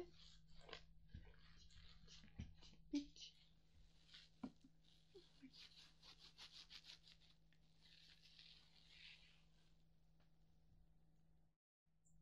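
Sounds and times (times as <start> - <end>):
ear cleaning: 0.2 - 9.4.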